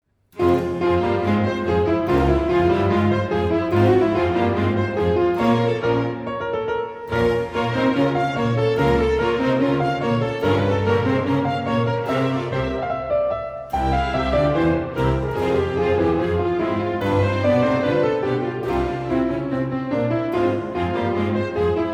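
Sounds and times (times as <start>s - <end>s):
solo keyboard concerto: 0.4s - 21.9s.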